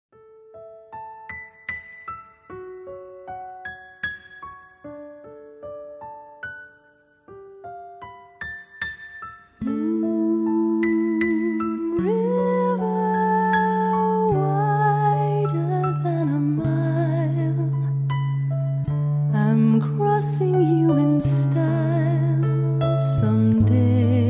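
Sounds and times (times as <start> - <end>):
bass: 9.6 - 24.2.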